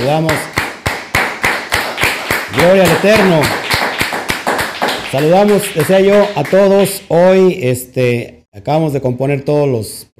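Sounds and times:
speech: 0:00.0 - 0:00.5, 0:02.5 - 0:03.6, 0:05.1 - 0:10.1
applause: 0:00.0 - 0:07.0.

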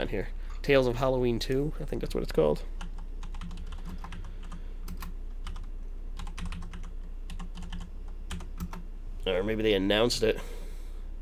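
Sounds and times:
speech: 0:00.0 - 0:02.8, 0:09.3 - 0:10.6
typing a search on a computer keyboard: 0:02.8 - 0:08.8.

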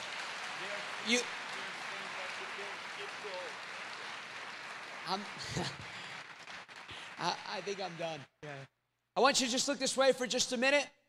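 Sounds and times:
audience applause: 0:00.0 - 0:08.7
speech: 0:01.0 - 0:01.4, 0:03.0 - 0:03.7, 0:05.0 - 0:06.0, 0:07.2 - 0:11.0
laughter: 0:05.2 - 0:06.1.

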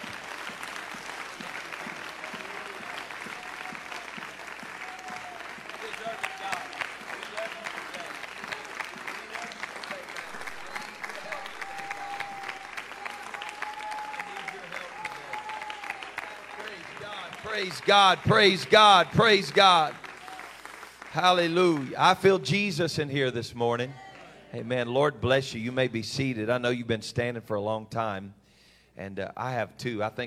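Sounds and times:
audience applause: 0:00.0 - 0:22.5
speech: 0:17.6 - 0:20.0, 0:21.2 - 0:28.4, 0:29.0 - 0:30.2.

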